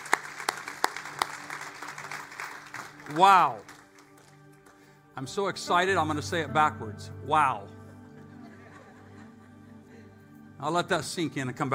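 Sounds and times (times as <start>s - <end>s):
audience applauding: 0.0s - 5.0s
speech: 3.1s - 3.7s, 5.2s - 7.8s, 10.6s - 11.7s
laughter: 7.9s - 10.2s.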